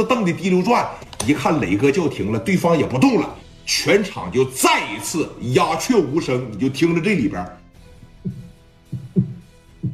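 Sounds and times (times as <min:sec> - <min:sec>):
speech: 0:00.0 - 0:07.6
low heartbeat sound effect: 0:07.9 - 0:09.9.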